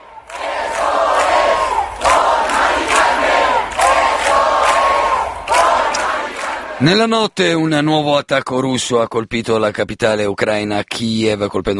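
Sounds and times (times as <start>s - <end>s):
crowd of protesters chanting and shouting in Puerta del Sol: 0.0s - 7.1s
speech: 6.8s - 11.7s.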